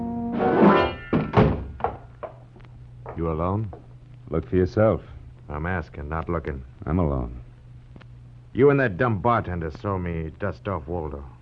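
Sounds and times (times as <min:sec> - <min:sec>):
door kicked shut: 0:01.0 - 0:02.0
speech: 0:03.2 - 0:07.4, 0:08.5 - 0:11.3.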